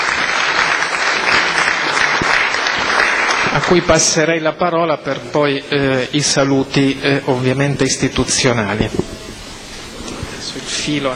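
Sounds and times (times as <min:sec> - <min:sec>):
assembly applause: 0:00.0 - 0:04.3
speech: 0:03.7 - 0:09.1, 0:10.9 - 0:11.1.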